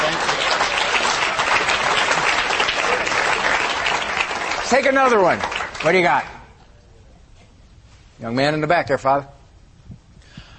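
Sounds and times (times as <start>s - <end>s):
audience applause: 0.0s - 6.4s
speech: 4.7s - 6.3s, 8.2s - 9.4s.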